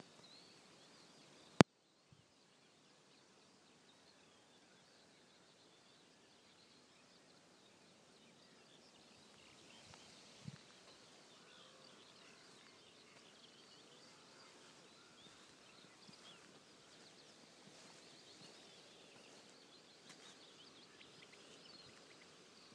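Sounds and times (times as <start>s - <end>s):
birds: 0.0s - 22.7s.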